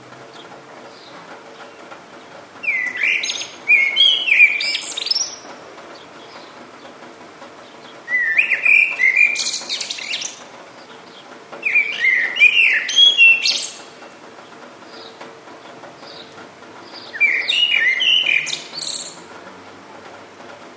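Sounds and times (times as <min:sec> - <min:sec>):
songbird warbling: 0:02.6 - 0:06.6, 0:07.6 - 0:13.9, 0:16.1 - 0:19.3.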